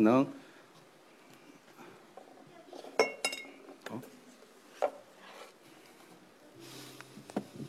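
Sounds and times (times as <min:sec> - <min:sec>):
glass bottles clinking while being set up for balancing: 0:03.0 - 0:03.6.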